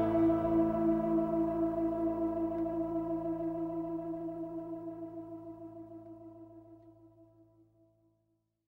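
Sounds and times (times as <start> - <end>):
acoustic music: 0.0 - 4.5.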